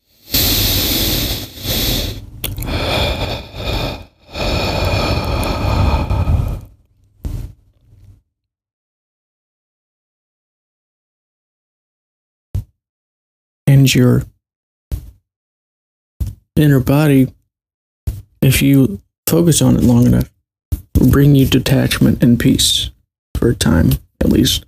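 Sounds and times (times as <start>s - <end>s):
deep breathing: 0.0s - 7.4s
speech: 13.9s - 14.3s, 16.6s - 17.4s, 18.4s - 20.3s, 21.0s - 24.6s.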